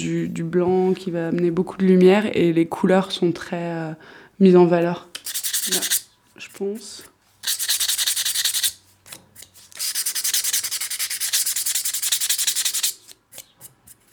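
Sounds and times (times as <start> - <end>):
speech: 0.0 - 5.1, 5.7 - 7.6
rasping sanding of porcelain bisque: 5.2 - 6.0, 7.4 - 8.8, 9.7 - 13.1.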